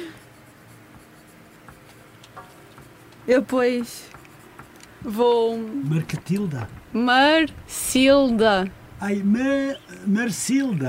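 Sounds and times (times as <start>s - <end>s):
pen scratching on paper writing a name by hand: 0.2s - 4.8s
speech: 3.3s - 4.2s, 5.0s - 10.8s.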